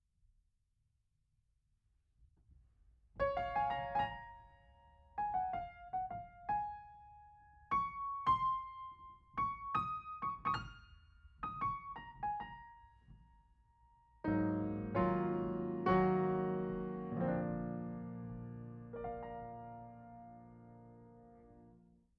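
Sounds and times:
piano: 0:03.1 - 0:22.1.

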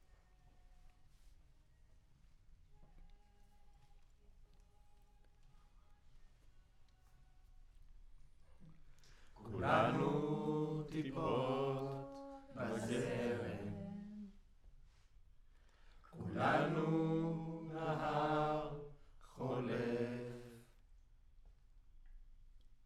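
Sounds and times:
choir singing: 0:09.4 - 0:14.4, 0:16.2 - 0:20.7.

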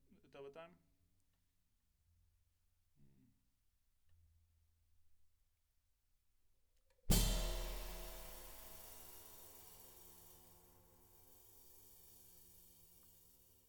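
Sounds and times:
snare drum top hit: 0:07.1 - 0:10.4.

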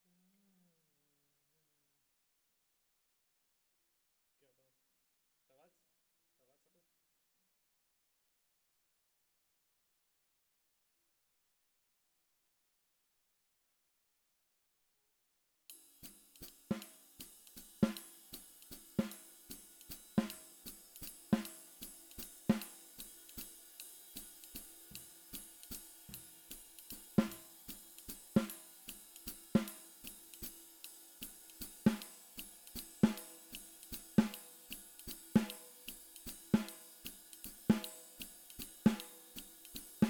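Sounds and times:
snare drum: 0:15.7 - 0:40.0.

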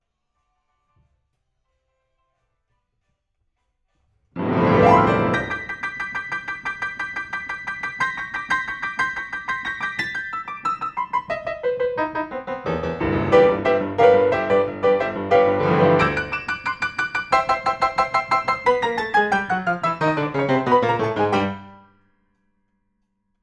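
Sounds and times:
piano: 0:04.4 - 0:22.0.

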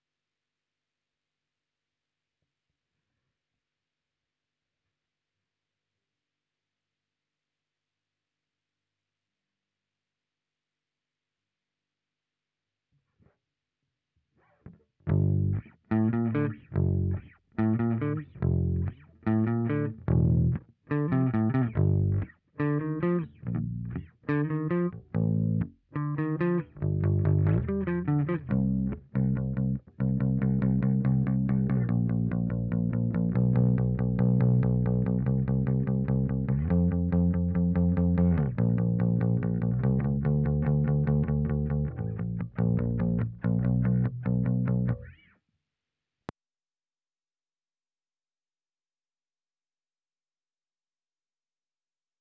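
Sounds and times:
bass guitar recorded by direct input: 0:14.7 - 0:45.3.

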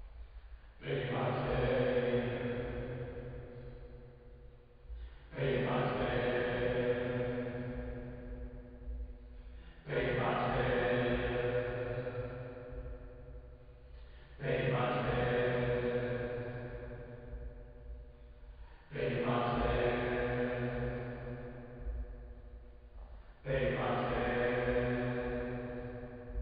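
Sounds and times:
choir singing: 0:00.8 - 0:03.4, 0:05.3 - 0:08.3, 0:09.8 - 0:12.6, 0:14.4 - 0:17.2, 0:18.9 - 0:21.7, 0:23.4 - 0:26.2.

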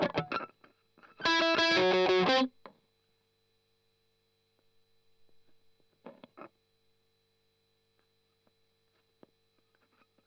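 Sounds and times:
strummed octaves: 0:01.2 - 0:02.5.

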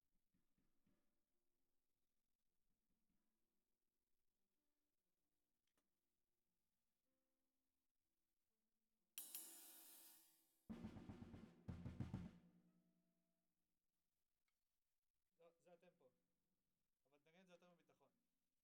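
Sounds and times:
snare drum: 0:09.2 - 0:12.5.

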